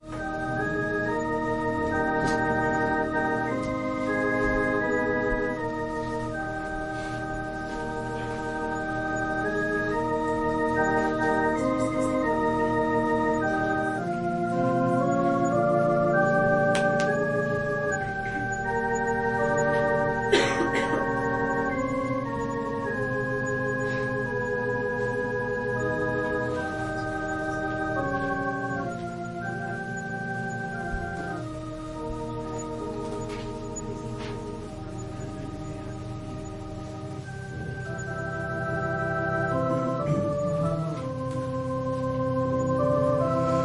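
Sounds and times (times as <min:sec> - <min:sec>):
organ prelude: 0:00.0 - 0:43.6.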